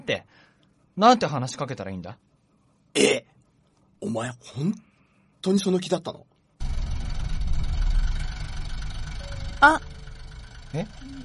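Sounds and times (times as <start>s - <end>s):
speech: 1.0s - 2.3s, 4.1s - 6.3s, 9.6s - 9.9s, 10.7s - 11.2s
bus engine idling before departure: 6.6s - 11.2s.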